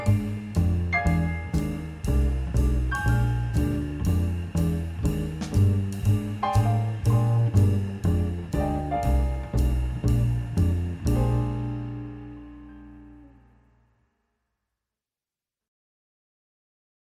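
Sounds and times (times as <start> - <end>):
comping walking bass line: 0.0 - 13.4.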